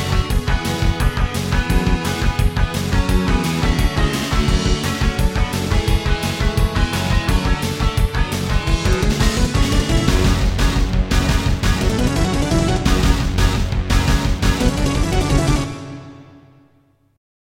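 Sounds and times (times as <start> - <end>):
intro music on a Terratec MiniWaveSystem WT64: 0.0 - 16.8.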